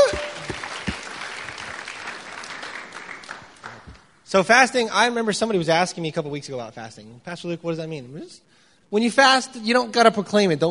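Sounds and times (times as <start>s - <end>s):
audience applause: 0.0s - 4.1s
speech: 4.3s - 10.6s.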